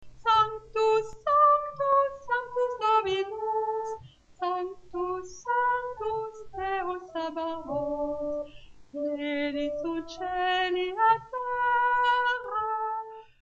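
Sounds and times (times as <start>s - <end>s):
soprano singing: 0.2s - 13.4s.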